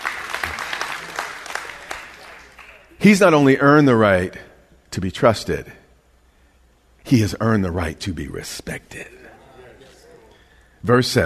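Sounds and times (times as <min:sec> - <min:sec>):
crowd applauding: 0:00.0 - 0:03.0
speech: 0:03.0 - 0:05.8, 0:07.1 - 0:09.2, 0:10.8 - 0:11.2.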